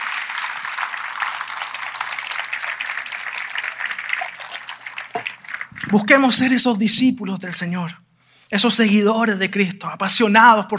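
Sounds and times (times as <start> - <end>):
audience applause: 0.0 - 6.6
speech: 5.9 - 10.7.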